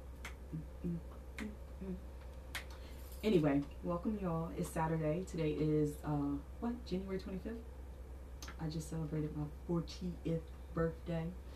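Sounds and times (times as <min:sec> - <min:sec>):
steady low hum: 0:00.0 - 0:11.5
speech: 0:00.5 - 0:01.2, 0:03.2 - 0:07.7, 0:08.6 - 0:11.5
hand claps: 0:02.5 - 0:02.8.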